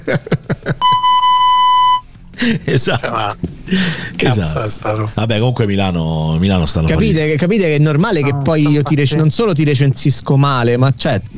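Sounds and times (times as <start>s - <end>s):
laughter: 0.0s - 0.9s, 2.4s - 5.1s, 8.1s - 9.5s
speech: 0.1s - 0.4s, 2.4s - 11.3s
censor bleep tone: 0.8s - 2.0s.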